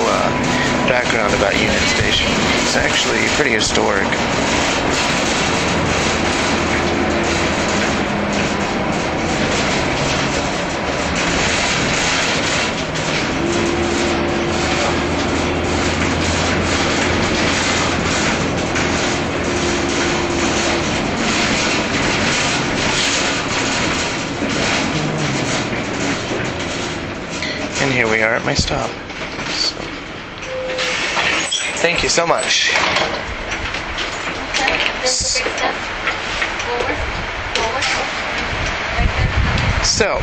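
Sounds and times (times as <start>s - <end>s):
noise inside a moving bus: 0.0s - 40.2s
speech: 0.9s - 5.2s, 28.4s - 29.1s, 31.8s - 33.4s, 39.9s - 40.2s.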